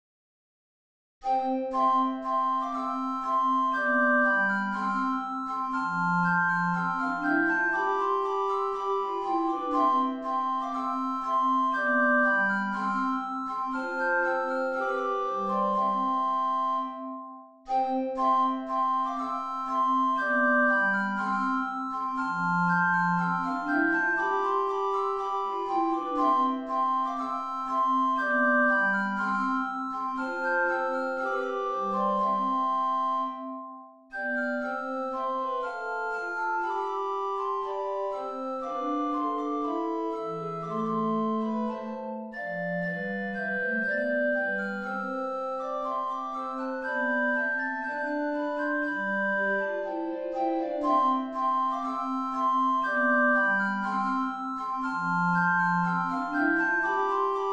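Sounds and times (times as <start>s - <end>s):
prelude music: 1.2s - 57.5s.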